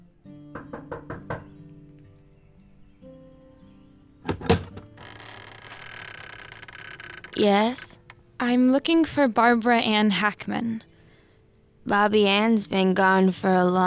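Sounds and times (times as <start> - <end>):
knocking on a door: 0.5 - 1.5
speech: 7.4 - 10.9, 11.9 - 13.8.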